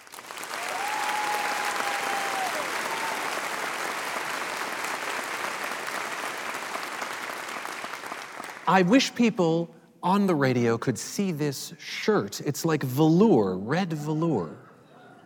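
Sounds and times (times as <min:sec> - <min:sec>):
audience applause welcoming a performer: 0:00.0 - 0:08.7
speech: 0:08.7 - 0:14.6.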